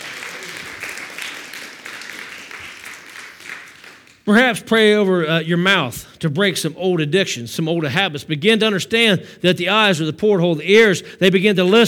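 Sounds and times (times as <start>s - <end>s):
audience clapping hands in praise: 0.0s - 4.5s
speech: 4.3s - 11.8s.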